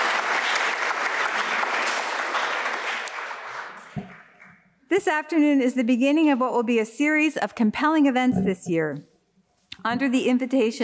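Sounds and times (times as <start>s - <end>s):
audience applause: 0.0s - 4.5s
speech: 4.9s - 9.1s, 9.8s - 10.8s.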